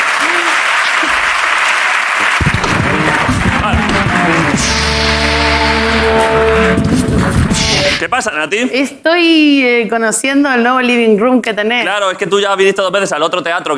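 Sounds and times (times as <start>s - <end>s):
audience applause: 0.0s - 8.0s
speech: 8.0s - 13.7s.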